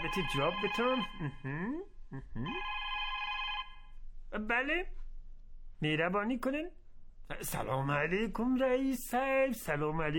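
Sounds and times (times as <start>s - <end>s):
telephone ringing: 0.0s - 1.2s, 2.5s - 3.9s
speech: 0.0s - 2.8s, 4.3s - 5.0s, 5.8s - 10.1s.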